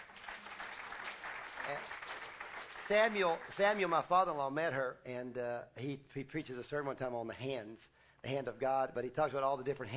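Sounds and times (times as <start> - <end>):
audience clapping: 0.0 - 4.1
speech: 1.7 - 2.0, 2.9 - 9.9.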